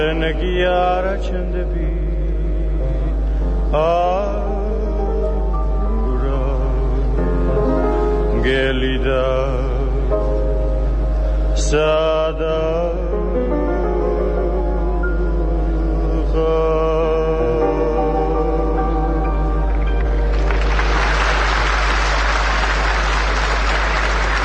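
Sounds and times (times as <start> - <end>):
speech: 0.0 - 2.1, 3.7 - 4.6, 8.4 - 9.8, 11.6 - 13.2
sustained tonal music: 0.0 - 24.4
ovation after an accompanied musical performance: 19.9 - 24.4.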